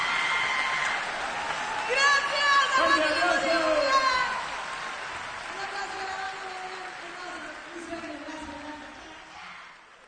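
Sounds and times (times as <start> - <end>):
applause: 0.0 - 10.0.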